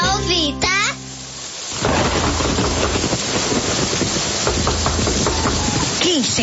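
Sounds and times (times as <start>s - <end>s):
heavy rain: 0.2s - 6.4s
thunder rumbling: 1.7s - 6.4s.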